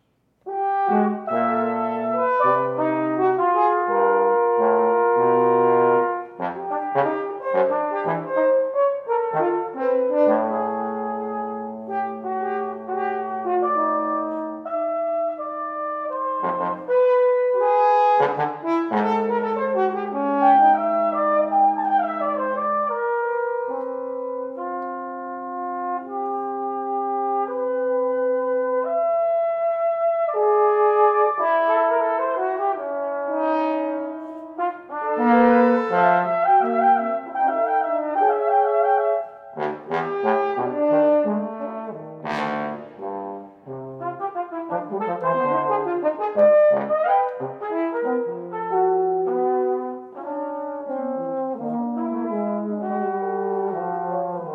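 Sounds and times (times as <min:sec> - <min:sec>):
musical trio: 0:00.0 - 0:54.5.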